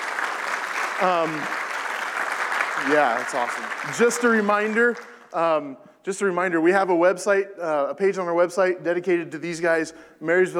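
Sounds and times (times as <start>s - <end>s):
audience applause: 0.0s - 5.4s
speech: 1.0s - 1.6s, 2.8s - 10.5s.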